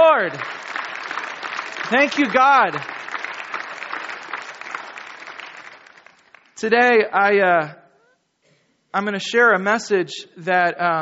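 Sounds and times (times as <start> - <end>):
audience clapping: 0.0 - 6.7
speech: 0.2 - 0.8, 1.9 - 2.9, 6.6 - 7.8, 8.9 - 11.0.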